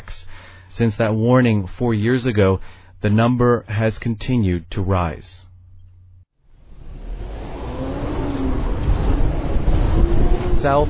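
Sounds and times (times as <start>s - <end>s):
speech: 0.8s - 5.5s, 10.6s - 10.8s
white Toyota Corolla engine and road noise climbing a hill on Pacific Coast Highway: 6.4s - 10.8s
faint rising tone: 6.5s - 10.8s.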